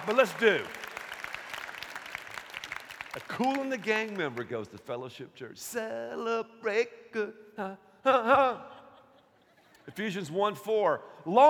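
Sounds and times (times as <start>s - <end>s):
speech: 0.0s - 0.8s, 3.2s - 8.7s, 9.9s - 11.4s
audience applause: 0.0s - 4.6s.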